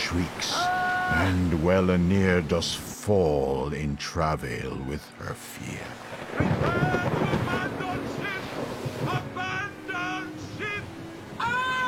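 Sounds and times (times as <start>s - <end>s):
sea around ship in storm: 0.0s - 11.8s
speech: 0.1s - 7.2s
storm wind around ship: 5.8s - 11.8s.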